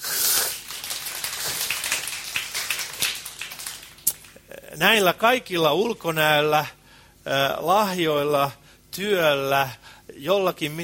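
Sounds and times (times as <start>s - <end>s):
audience applause: 0.4s - 4.4s
speech: 4.8s - 10.8s.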